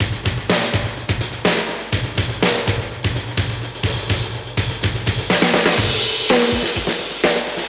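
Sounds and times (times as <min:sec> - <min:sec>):
classic drum breaks at 125 BPM: 0:00.0 - 0:07.6.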